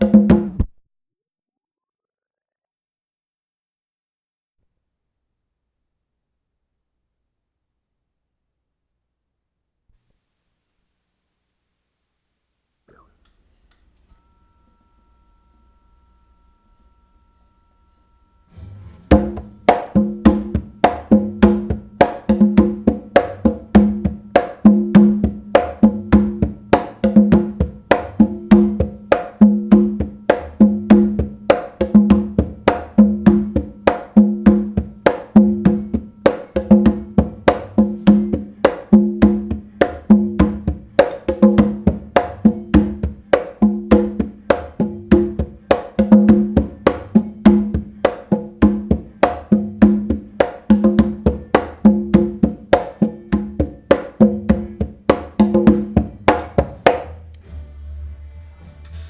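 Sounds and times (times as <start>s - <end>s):
conga drum: 0.0s - 0.7s, 18.5s - 59.0s.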